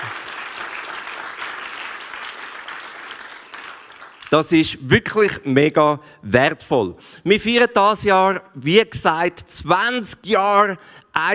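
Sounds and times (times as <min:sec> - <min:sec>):
audience applause: 0:00.0 - 0:04.6
speech: 0:04.3 - 0:11.3.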